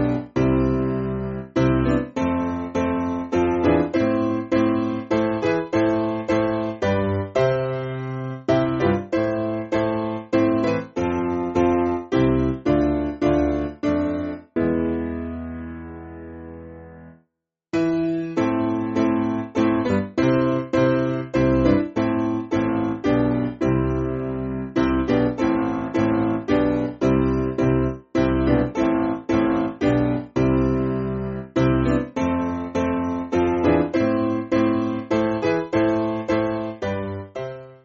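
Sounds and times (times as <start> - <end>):
piano: 0.0 - 37.8.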